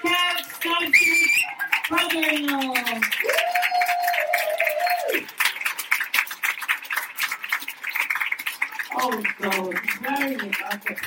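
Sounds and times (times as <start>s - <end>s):
audience applause: 0.0s - 11.0s
long sustained whoop or whistle: 0.9s - 1.6s, 3.2s - 5.2s.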